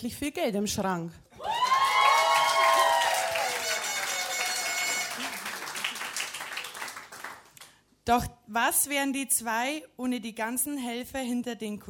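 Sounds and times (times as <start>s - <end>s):
speech: 0.0s - 1.5s, 8.0s - 11.8s
audience applause: 1.4s - 7.7s.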